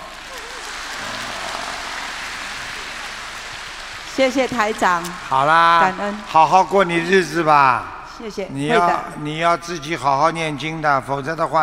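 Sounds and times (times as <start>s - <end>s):
crowd applause: 0.0s - 7.3s
speech: 4.2s - 11.6s.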